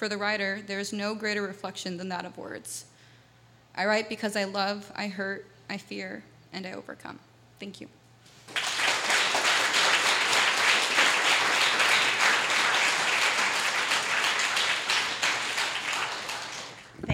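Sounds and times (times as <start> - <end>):
speech: 0.0 - 2.9, 3.8 - 8.6
audience applause: 8.5 - 17.0.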